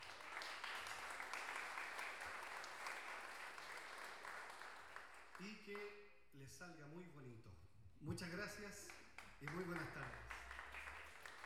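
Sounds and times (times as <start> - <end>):
audience applause: 0.0 - 5.5, 9.4 - 11.4
speech: 5.4 - 10.4.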